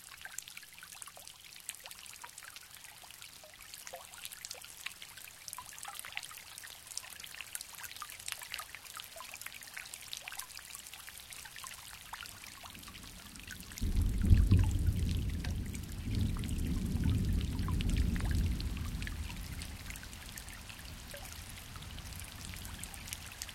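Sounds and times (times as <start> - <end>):
thunderstorm: 13.1 - 23.5.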